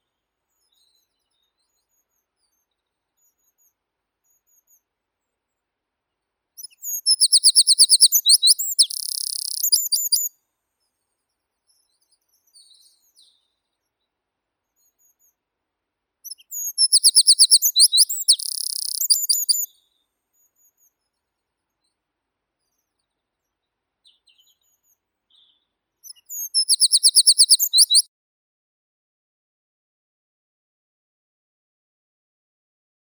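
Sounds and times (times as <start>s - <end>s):
wren Troglodytes troglodytes: 6.6s - 10.3s, 16.3s - 19.7s, 26.1s - 28.0s.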